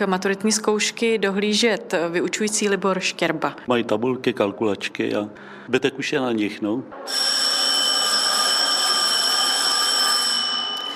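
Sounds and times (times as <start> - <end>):
speech: 0.0 - 7.6
school bell ringing: 7.0 - 10.9.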